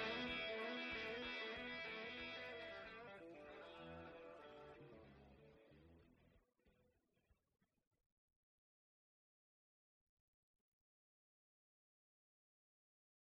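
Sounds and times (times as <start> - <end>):
dry guitar solo: 0.0 - 6.3.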